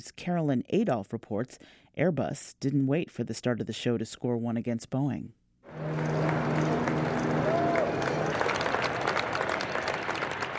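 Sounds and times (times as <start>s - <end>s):
speech: 0.0s - 6.2s
Airbus employees applauding A350 maiden flight: 5.7s - 10.5s.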